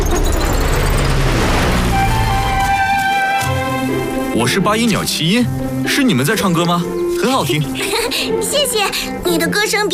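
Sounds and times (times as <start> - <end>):
cartoon flying-fish boat engine blast: 0.1 - 3.1
speech: 4.4 - 9.9.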